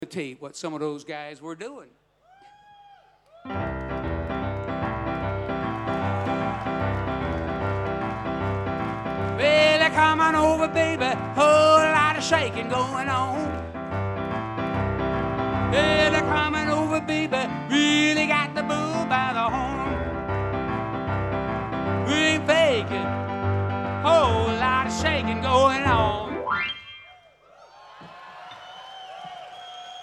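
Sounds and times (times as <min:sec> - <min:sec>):
piano piece: 0:03.5 - 0:27.2.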